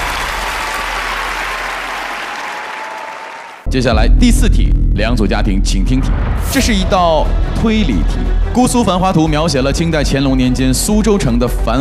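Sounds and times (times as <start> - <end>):
audience applause: 0.0 - 3.7
speech: 3.7 - 11.7.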